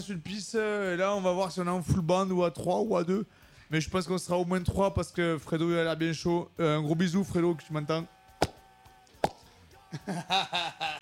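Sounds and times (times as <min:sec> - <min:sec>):
speech: 0:00.0 - 0:08.2, 0:09.9 - 0:11.0
bottle of cheap red wine being opened: 0:08.4 - 0:08.6, 0:09.2 - 0:09.4
laughter: 0:09.9 - 0:11.0.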